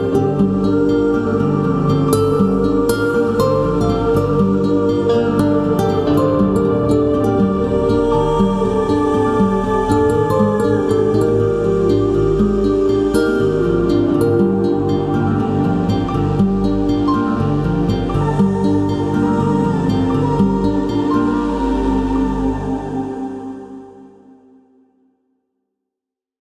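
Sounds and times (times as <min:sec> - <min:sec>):
ethereal space ambience: 0:00.0 - 0:25.0.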